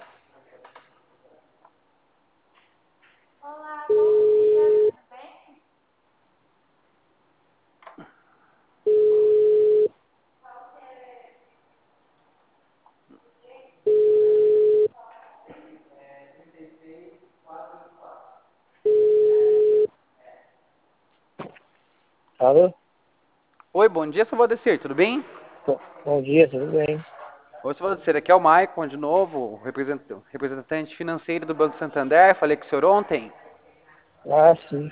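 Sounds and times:
telephone ringback tone as a call connects: 3.9 - 4.9, 8.9 - 9.9, 13.9 - 14.9, 18.9 - 19.9
speech: 22.4 - 22.7, 23.9 - 33.4, 34.2 - 34.9.

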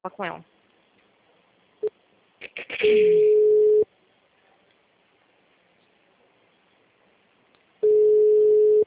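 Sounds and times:
telephone ringback tone while a call connects: 3.0 - 3.8, 7.8 - 8.8.

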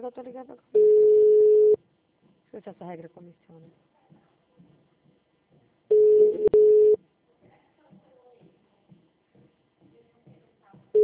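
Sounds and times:
speech: 0.0 - 1.3, 2.5 - 4.7
ringback tone of a call placed to a client: 0.8 - 1.8, 5.9 - 7.0.

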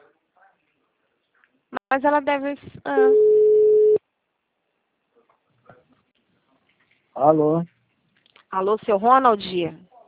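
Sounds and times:
speech: 1.9 - 3.4, 7.2 - 7.8, 8.5 - 9.9
telephone tone after dropped call: 3.0 - 4.0.

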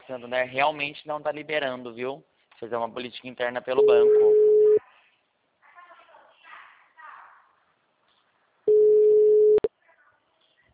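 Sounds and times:
speech: 0.1 - 4.5
telephone busy signal: 3.8 - 4.8, 8.7 - 9.7.

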